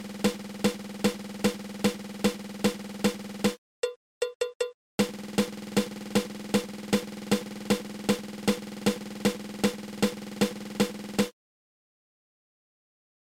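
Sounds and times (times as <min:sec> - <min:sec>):
seven-stroke roll: 0:00.0 - 0:03.6, 0:05.0 - 0:11.3.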